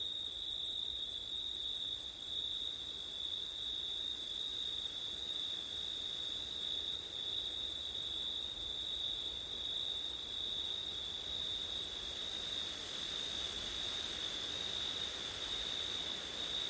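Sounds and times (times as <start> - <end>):
crickets chirping in a dense chorus: 0.0 - 16.6.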